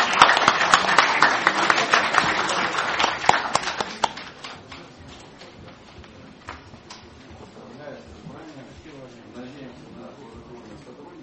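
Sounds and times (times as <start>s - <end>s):
audience applauding at a regional legislative assembly session: 0.0s - 4.8s.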